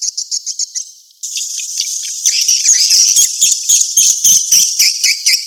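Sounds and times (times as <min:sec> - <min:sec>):
swiftlets twittering: 0:01.3 - 0:05.2.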